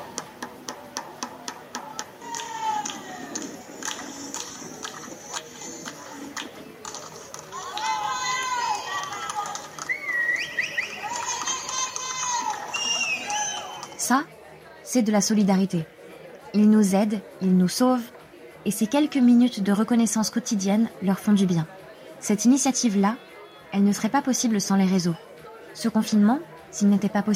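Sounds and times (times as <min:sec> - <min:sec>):
people cheering for caregivers from windows: 0:00.0 - 0:14.0
speech: 0:14.1 - 0:14.3, 0:14.9 - 0:16.0, 0:16.6 - 0:25.2, 0:25.8 - 0:27.3.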